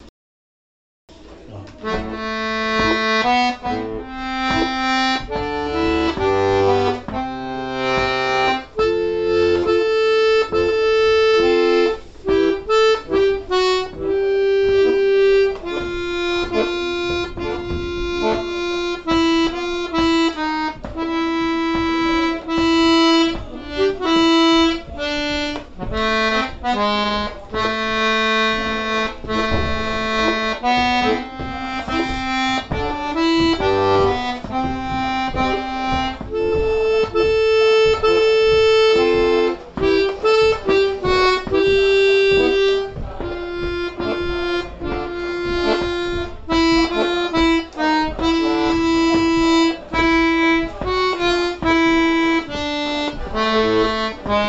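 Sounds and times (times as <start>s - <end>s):
polka music: 1.1s - 54.4s.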